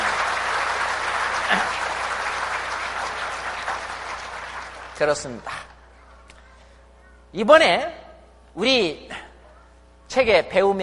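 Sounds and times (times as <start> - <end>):
audience clapping: 0.0 - 5.9
speech: 5.0 - 5.6, 7.3 - 8.0, 8.6 - 9.2, 10.1 - 10.8.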